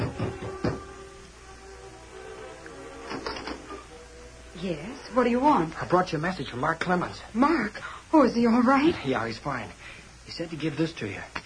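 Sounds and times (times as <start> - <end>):
soft knocking on a door: 0.0 - 0.9
speech: 4.6 - 11.4.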